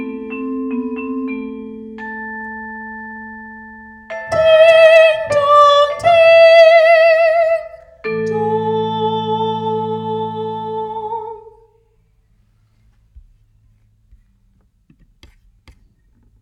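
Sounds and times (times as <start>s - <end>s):
soprano singing a carol: 4.1s - 11.8s.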